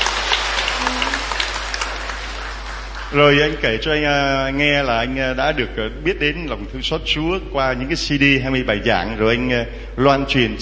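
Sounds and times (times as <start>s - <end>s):
audience applause: 0.0s - 3.8s
speech: 3.1s - 10.6s.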